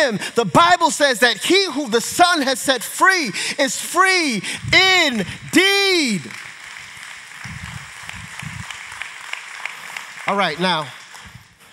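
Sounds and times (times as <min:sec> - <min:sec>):
speech: 0:00.0 - 0:06.5, 0:10.3 - 0:11.0
audience applause: 0:05.0 - 0:11.7.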